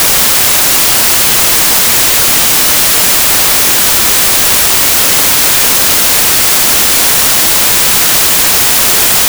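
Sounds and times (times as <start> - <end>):
stereo white rect noise: 0.0 - 9.2.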